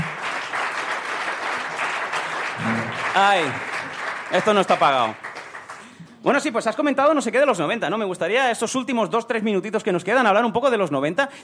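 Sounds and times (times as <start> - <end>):
audience applause: 0.0 - 5.9
speech: 2.6 - 3.7, 4.3 - 5.2, 6.2 - 11.4.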